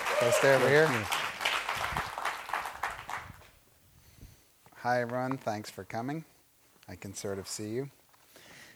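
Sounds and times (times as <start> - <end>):
audience clapping: 0.0 - 3.5
speech: 0.2 - 1.2, 4.8 - 6.3, 6.9 - 8.0.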